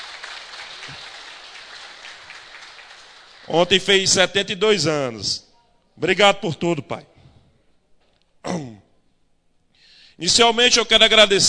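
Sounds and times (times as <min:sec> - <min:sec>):
audience applause: 0:00.0 - 0:03.8
speech: 0:03.5 - 0:07.1, 0:10.2 - 0:11.4.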